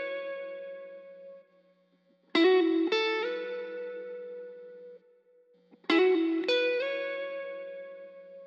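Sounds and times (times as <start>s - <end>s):
guitar lead melody in A major: 0.0s - 1.4s, 2.3s - 5.0s, 5.8s - 8.4s.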